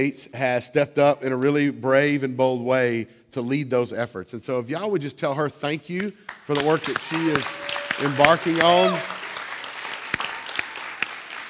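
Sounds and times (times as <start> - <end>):
speech: 0.0 - 9.2
live audience applause at a community gathering: 6.3 - 11.4.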